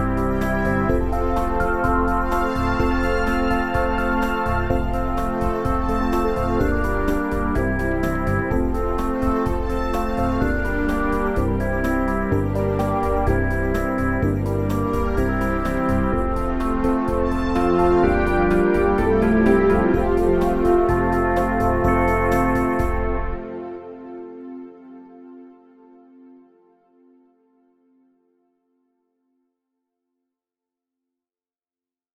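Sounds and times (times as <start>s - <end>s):
backing music: 0.0s - 25.4s.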